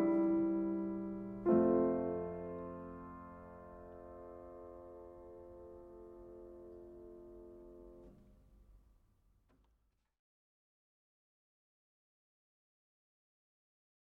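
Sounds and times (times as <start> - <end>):
prelude and fugue in F-sharp minor: 0.0 - 8.1.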